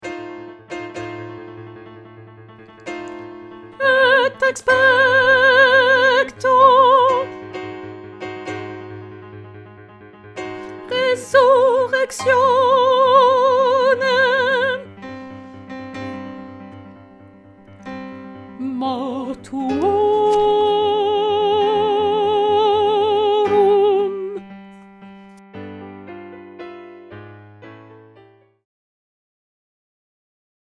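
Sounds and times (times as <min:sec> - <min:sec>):
soprano singing a Credo: 0:02.8 - 0:07.9, 0:10.5 - 0:25.4.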